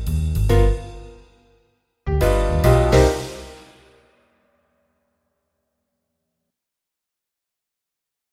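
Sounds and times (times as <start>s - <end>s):
jazz intro music: 0.0s - 1.3s, 2.1s - 4.0s.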